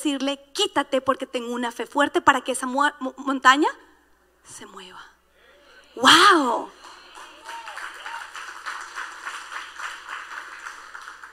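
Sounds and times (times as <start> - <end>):
speech: 0.0 - 5.1, 6.0 - 6.8
higher-pitched cheers: 5.6 - 11.3
audience applause: 6.7 - 11.3.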